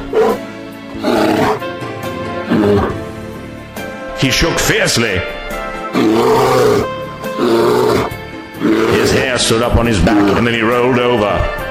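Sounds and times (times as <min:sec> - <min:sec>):
loud animal howl: 0:00.0 - 0:00.4, 0:01.0 - 0:01.7, 0:02.5 - 0:03.0, 0:05.9 - 0:10.6
speech: 0:02.5 - 0:03.0, 0:04.2 - 0:05.4, 0:06.0 - 0:07.7, 0:08.7 - 0:11.6.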